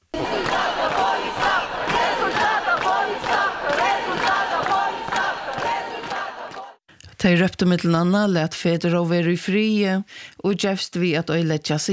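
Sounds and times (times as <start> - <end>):
crowd of protesters shouting: 0.1 - 6.8
speech: 7.2 - 11.9.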